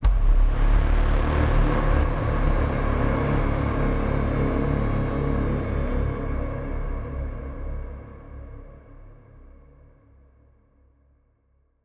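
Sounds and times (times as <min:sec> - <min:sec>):
cinematic braam in C: 0:00.0 - 0:08.2.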